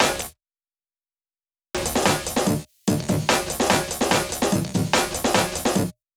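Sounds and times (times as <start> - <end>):
snare drum: 0.0 - 0.3, 1.8 - 6.0.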